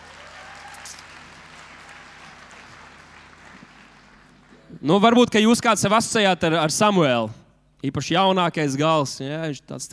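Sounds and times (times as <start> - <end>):
audience applause: 0.0 - 4.8
speech: 4.8 - 9.9.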